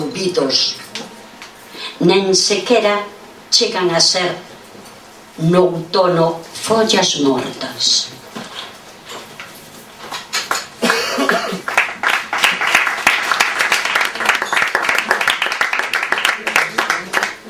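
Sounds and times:
speech: 0:00.2 - 0:00.9, 0:01.8 - 0:04.5, 0:05.4 - 0:08.2
audience applause: 0:10.5 - 0:17.4.

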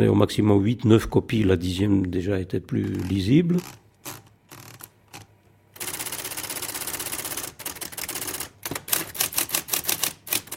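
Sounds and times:
speech: 0:00.0 - 0:03.8
typewriter typing: 0:02.8 - 0:10.5.

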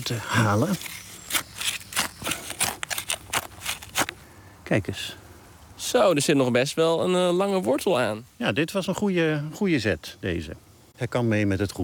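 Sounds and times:
speech: 0:00.0 - 0:01.0, 0:04.7 - 0:05.2, 0:05.8 - 0:11.8
scissors snipping a small plant: 0:00.6 - 0:04.2.

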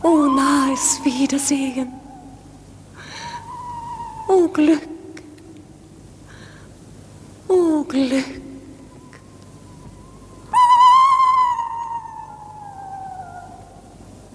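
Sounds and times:
owl hooting: 0:00.0 - 0:05.8, 0:08.9 - 0:14.1
speech: 0:00.8 - 0:02.1, 0:04.3 - 0:04.9, 0:07.5 - 0:08.5.

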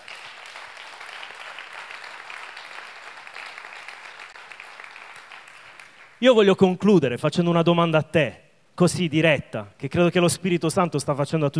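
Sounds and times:
congregation clapping at a Sunday church gathering: 0:00.0 - 0:06.4
speech: 0:06.2 - 0:11.5.

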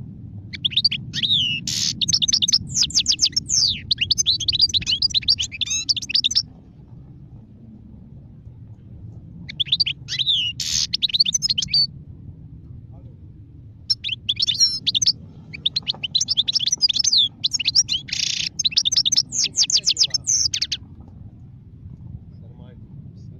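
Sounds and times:
European goldfinch singing with twittering, chirps and buzzy trills: 0:00.5 - 0:06.4, 0:09.5 - 0:11.9, 0:13.9 - 0:20.8.

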